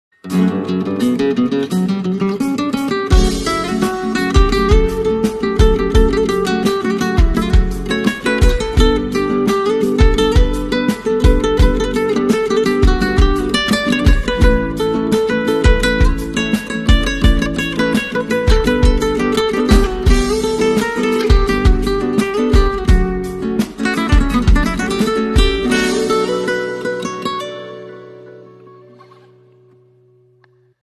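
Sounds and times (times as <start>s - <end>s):
guitar: 0.1s - 30.8s.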